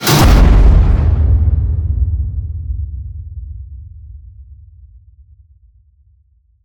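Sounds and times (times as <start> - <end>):
cinematic metal crash hit: 0.0 - 2.7.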